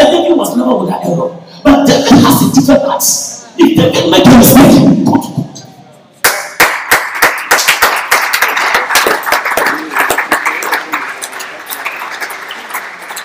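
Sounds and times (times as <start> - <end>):
speech: 0.9 - 5.5
audience clapping: 6.2 - 13.2.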